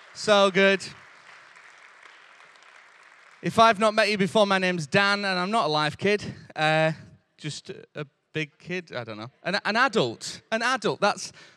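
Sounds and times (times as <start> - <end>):
audience applause: 0.0 - 4.2
speech: 0.2 - 1.0, 3.4 - 11.5.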